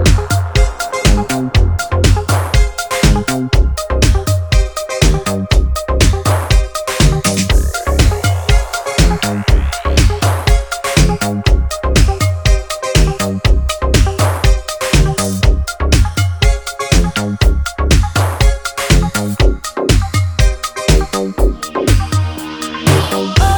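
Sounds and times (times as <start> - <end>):
dub music: 0.0 - 23.5.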